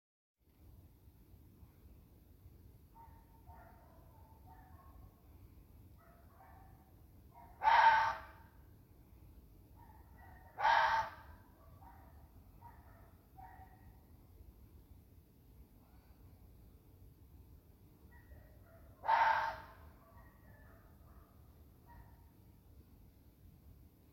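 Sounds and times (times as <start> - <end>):
fox barking: 3.0 - 5.2, 6.0 - 8.6, 9.8 - 14.0, 18.1 - 22.2
fox screeching: 7.6 - 8.4, 10.6 - 11.3, 19.0 - 19.8.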